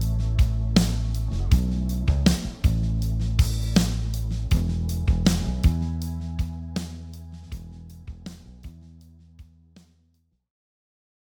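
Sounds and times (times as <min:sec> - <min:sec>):
rhythm: 0:00.0 - 0:08.8.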